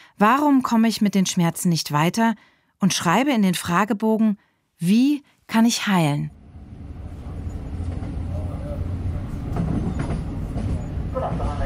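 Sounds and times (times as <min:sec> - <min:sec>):
speech: 0:00.2 - 0:06.4
night train to Amsterdam rumbling: 0:06.3 - 0:11.6.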